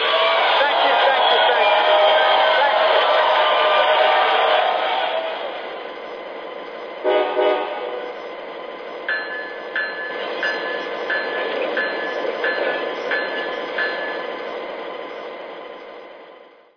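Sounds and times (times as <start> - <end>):
ES44 diesel locomotive trains: 0.0 - 16.7.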